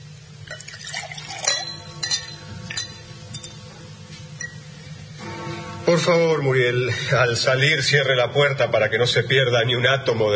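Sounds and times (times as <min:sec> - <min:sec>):
low steady hum: 0:00.0 - 0:10.3
liquid pouring: 0:00.4 - 0:01.8
liqueur glasses clinking as drinks are served: 0:00.4 - 0:03.7, 0:04.4 - 0:04.7
speech: 0:06.0 - 0:10.3.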